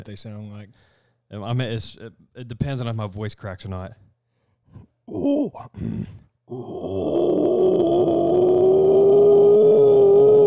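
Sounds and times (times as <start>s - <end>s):
speech: 0.0s - 4.1s, 4.7s - 9.0s
person imitating a howler monkey: 6.5s - 10.4s.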